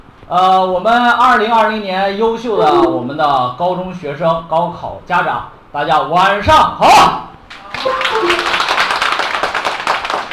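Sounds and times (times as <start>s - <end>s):
speech: 0.3s - 8.4s
sparse audience applause: 7.5s - 10.3s.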